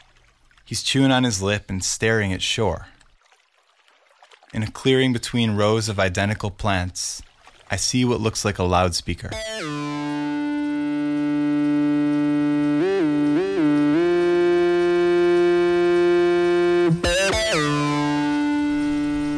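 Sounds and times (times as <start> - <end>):
speech: 0.7 - 3.0, 4.6 - 10.0
strange analog synthesizer tones: 9.3 - 19.3.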